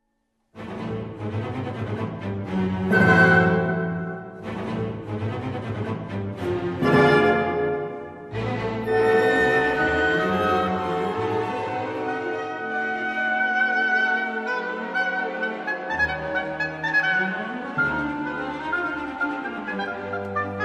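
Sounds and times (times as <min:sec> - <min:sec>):
oboe concerto: 0:00.7 - 0:20.6.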